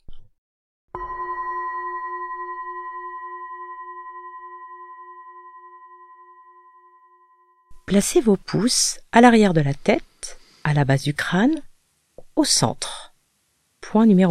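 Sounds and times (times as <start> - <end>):
gong strike: 1.0 - 7.7
speech: 7.9 - 11.7, 12.4 - 13.0, 13.9 - 14.3.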